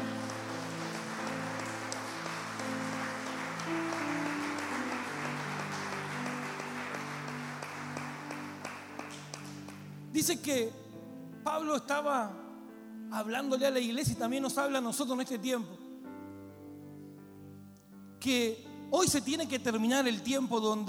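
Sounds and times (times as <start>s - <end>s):
audience applause: 0.0s - 9.9s
speech: 10.2s - 10.8s, 11.6s - 12.4s, 13.1s - 15.8s, 18.2s - 20.8s.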